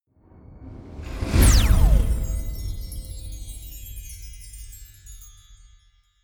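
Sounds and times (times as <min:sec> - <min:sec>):
magic warp personal jump sparkle: 0:01.0 - 0:06.0.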